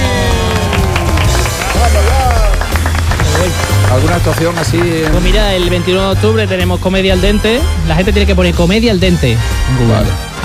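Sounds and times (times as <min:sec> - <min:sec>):
audience applause: 0:00.0 - 0:05.8
people cheering: 0:00.0 - 0:05.8
speech: 0:04.0 - 0:10.4.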